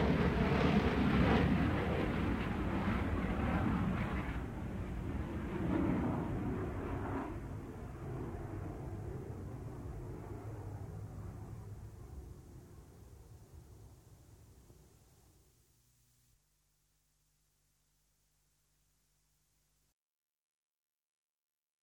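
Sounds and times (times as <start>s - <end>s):
jet aircraft: 0.0s - 15.3s.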